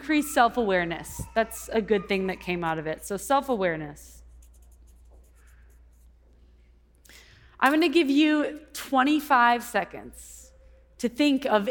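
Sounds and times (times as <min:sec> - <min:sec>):
speech: 0:00.0 - 0:04.2, 0:07.6 - 0:10.4, 0:11.0 - 0:11.6
pen scratching on a popsicle stick: 0:04.3 - 0:06.2.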